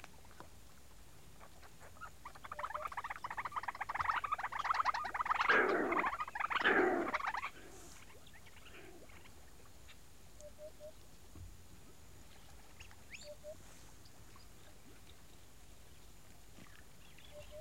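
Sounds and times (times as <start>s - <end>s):
birds at a lakeside in daytime: 1.4s - 11.5s, 12.2s - 17.5s
hippo at a lakeside in daytime: 5.3s - 9.3s.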